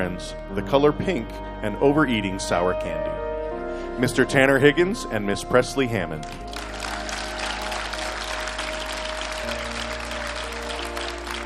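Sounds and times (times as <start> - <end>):
speech: 0.0 - 3.2, 3.8 - 6.6
crowd applause: 6.5 - 11.4.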